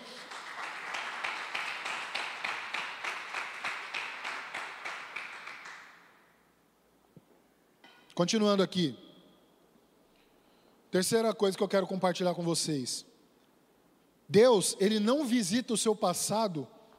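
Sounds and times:
audience clapping: 0.0 - 6.2
speech: 8.2 - 9.0, 11.0 - 13.1, 14.3 - 16.8.

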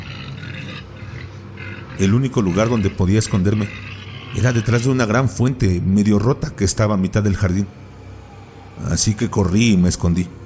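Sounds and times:
pig grunting: 0.0 - 5.6
speech: 2.0 - 7.9, 8.8 - 10.4.

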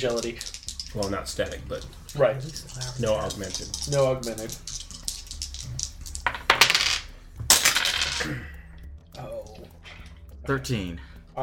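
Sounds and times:
speech: 0.0 - 4.8, 8.2 - 8.5, 10.4 - 11.4
several dice rattling and clattering across a hard surface: 0.0 - 8.2.

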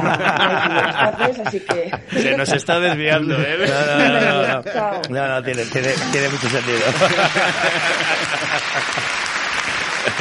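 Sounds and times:
laughter: 0.0 - 10.1
speech: 0.1 - 9.4
audience applause: 5.6 - 10.1.

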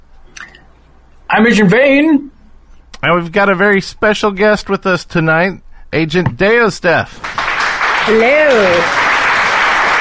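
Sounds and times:
speech: 1.3 - 2.4, 3.0 - 7.4, 8.0 - 9.0
applause: 7.2 - 9.9.

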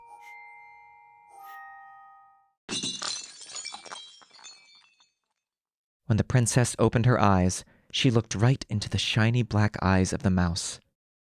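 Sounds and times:
soft bell-like chime tones: 0.0 - 2.6
glass snow globe shattering: 2.7 - 5.3
speech: 6.1 - 10.8.

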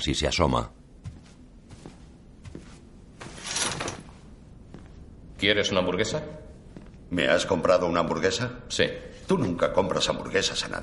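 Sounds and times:
speech: 0.0 - 0.8, 5.4 - 6.4, 7.1 - 10.8
gym door opening at night: 3.2 - 4.2.

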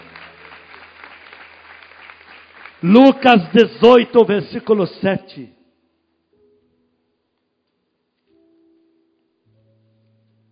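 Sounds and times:
audience applauding: 0.0 - 4.7
speech: 2.8 - 5.6.

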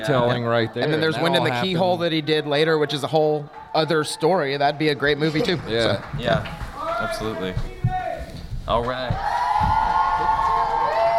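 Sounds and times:
speech: 0.0 - 7.7, 8.7 - 9.4
crowd cheering: 0.0 - 11.1
high whoops: 9.1 - 11.1.

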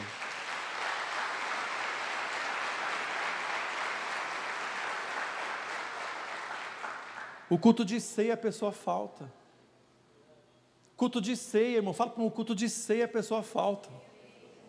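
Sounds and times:
audience applauding: 0.0 - 7.5
speech: 7.5 - 9.4, 11.0 - 14.1.

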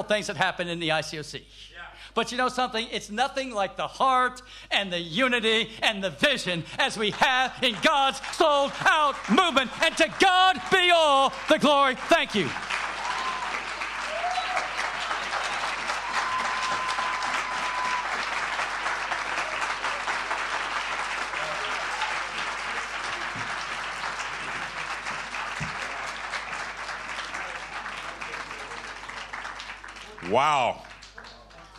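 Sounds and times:
speech: 0.0 - 12.8, 30.4 - 30.8
audience applause: 6.8 - 31.7.

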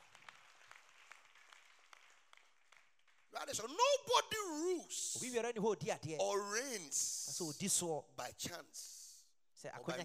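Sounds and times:
audience clapping: 0.0 - 4.0
speech: 3.4 - 9.0, 9.6 - 10.0.

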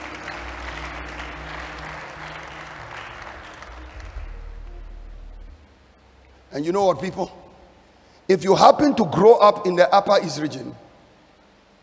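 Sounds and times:
audience clapping: 0.0 - 5.6
speech: 6.5 - 7.4, 8.3 - 10.8.

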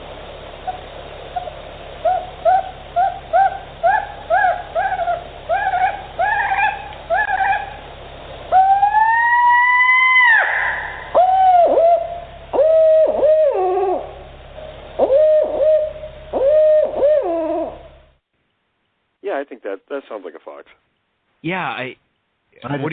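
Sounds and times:
fox call: 0.6 - 7.9, 8.5 - 14.3, 15.0 - 18.0
speech: 19.9 - 20.8, 21.4 - 22.0, 22.6 - 22.9.

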